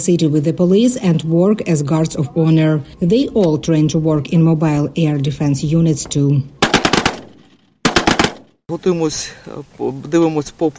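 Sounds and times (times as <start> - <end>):
speech: 0.0 - 6.6, 8.7 - 10.7
machine gun fire during practice: 6.6 - 8.6.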